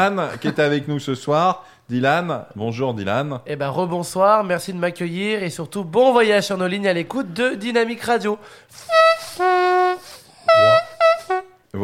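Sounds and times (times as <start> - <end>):
speech: 0.0 - 10.8
voice imitating a train horn: 8.8 - 11.5.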